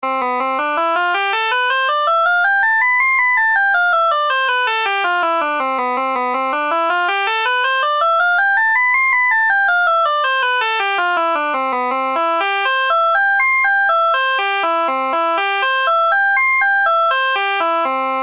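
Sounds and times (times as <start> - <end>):
C major scale: 0.0 - 18.2.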